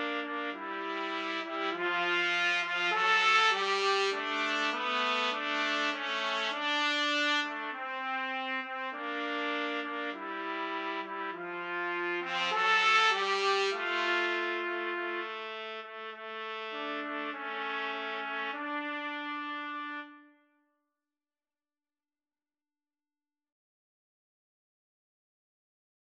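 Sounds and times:
trumpet trio playing: 0.0s - 20.4s.

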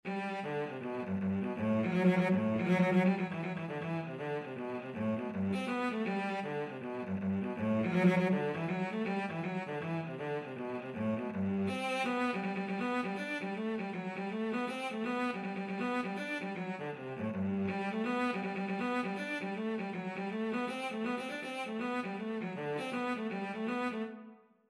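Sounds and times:
violoncello: 0.0s - 24.4s.

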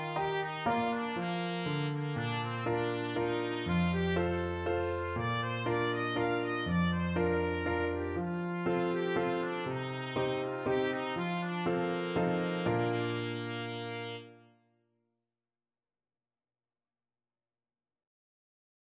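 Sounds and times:
trumpet melody: 0.0s - 14.6s.

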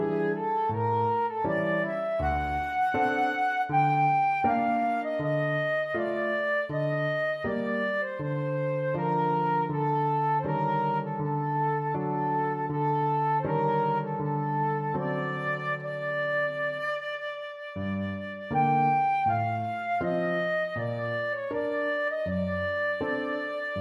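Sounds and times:
classical flute piece: 0.0s - 23.7s.

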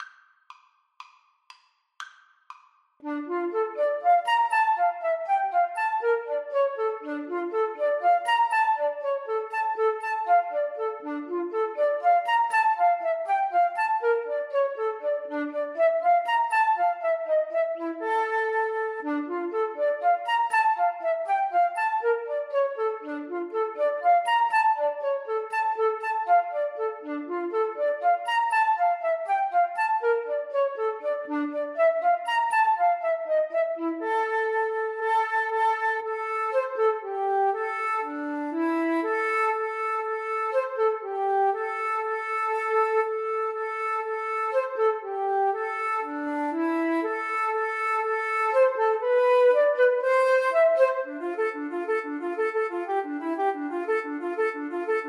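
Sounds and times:
flute duet karaoke backing: 3.0s - 55.0s.

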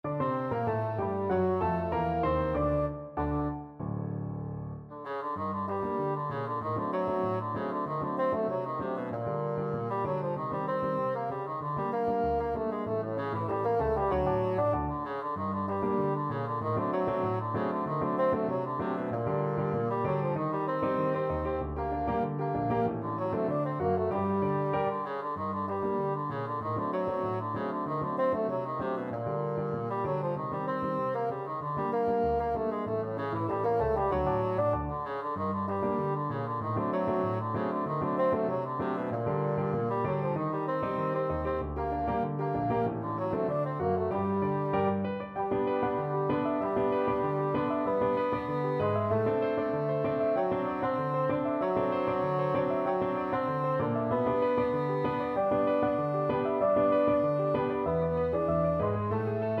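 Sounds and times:
bassoon: 0.0s - 3.8s, 4.9s - 59.5s.

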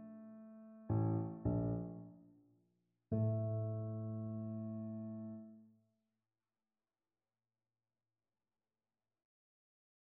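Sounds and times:
electric piano: 0.0s - 2.1s, 3.1s - 5.5s.

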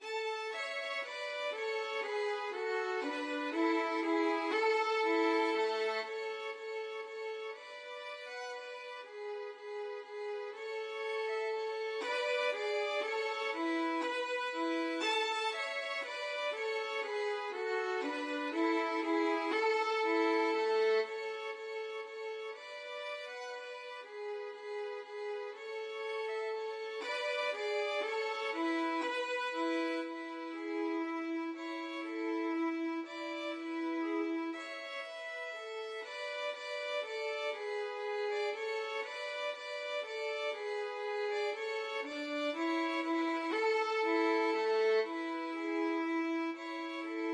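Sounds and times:
violin duet playing a minuet: 0.0s - 47.3s.

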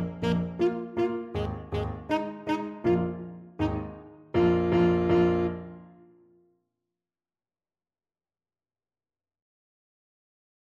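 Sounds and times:
thumping blues alto saxophone: 0.0s - 6.0s.

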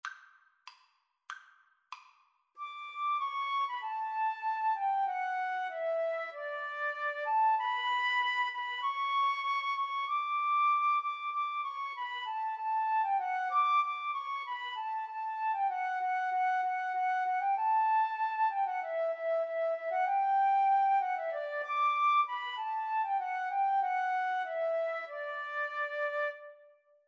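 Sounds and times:
flute duet: 2.6s - 26.8s.

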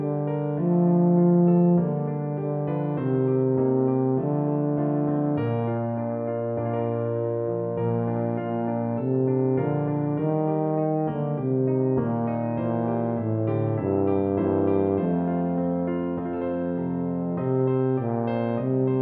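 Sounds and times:
Christmas carol played on tuba: 0.0s - 18.9s.

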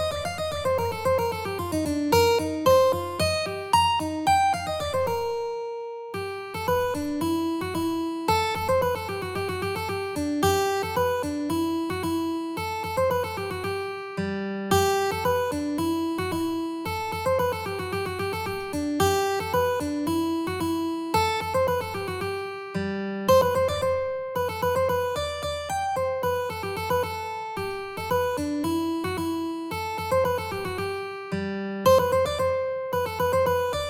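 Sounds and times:
mandolin in a mandolin-cello duet: 0.0s - 33.8s.

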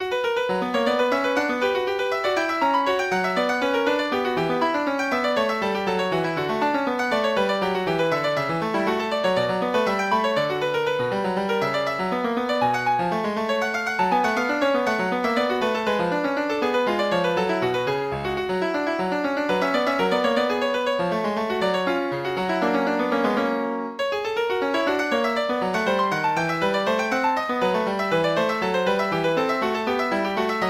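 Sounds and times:
piano allemande: 0.0s - 30.6s.

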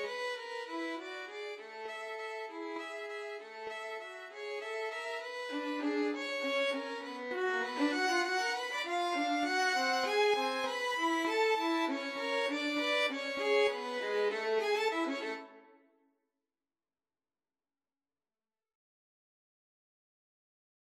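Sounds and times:
violin duet playing a waltz: 0.0s - 15.5s.

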